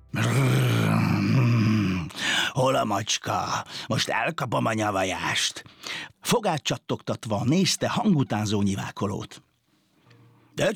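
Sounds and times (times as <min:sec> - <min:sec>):
human voice imitating an angry dog growling: 0:00.1 - 0:02.2
speech: 0:02.6 - 0:09.5, 0:10.6 - 0:10.7.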